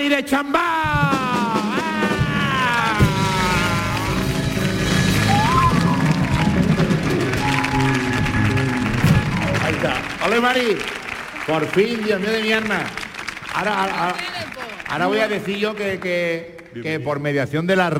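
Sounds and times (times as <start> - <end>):
speech: 0.0 - 1.3, 9.8 - 13.0, 13.6 - 17.9
audience applause welcoming the guest: 1.1 - 17.2.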